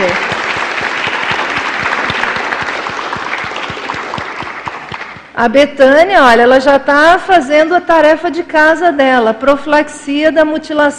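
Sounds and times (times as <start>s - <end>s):
audience applause: 0.0s - 5.3s
speech: 5.4s - 10.9s.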